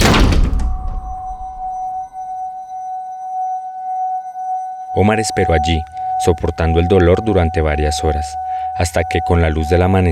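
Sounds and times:
door being shut: 0:00.0 - 0:01.8
steady metallic ringing tone: 0:00.5 - 0:10.1
speech: 0:05.0 - 0:10.1.

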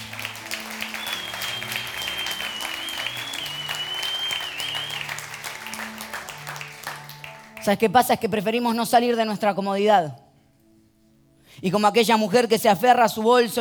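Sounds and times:
audience applause: 0:00.0 - 0:07.6
speech: 0:07.6 - 0:10.2, 0:11.6 - 0:13.5.

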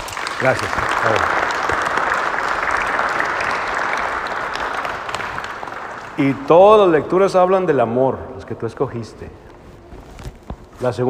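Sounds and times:
applause: 0:00.0 - 0:07.7
speech: 0:00.4 - 0:01.4, 0:06.2 - 0:09.4, 0:10.8 - 0:11.0.

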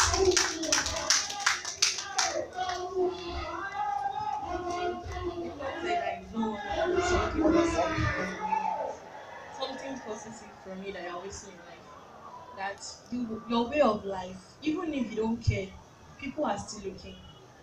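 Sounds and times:
group of children clapping for a girl coming forward: 0:00.0 - 0:03.3
children chattering: 0:02.1 - 0:14.0
speech: 0:12.7 - 0:17.3.

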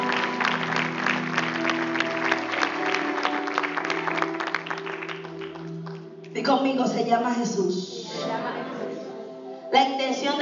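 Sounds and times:
audience applauding: 0:00.0 - 0:06.3
speech: 0:06.4 - 0:08.6, 0:09.7 - 0:10.4.

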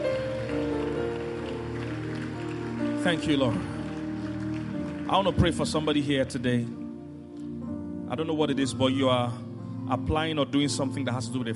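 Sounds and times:
audience clapping: 0:00.0 - 0:06.4
speech: 0:03.0 - 0:03.8, 0:05.1 - 0:06.8, 0:08.1 - 0:11.5.

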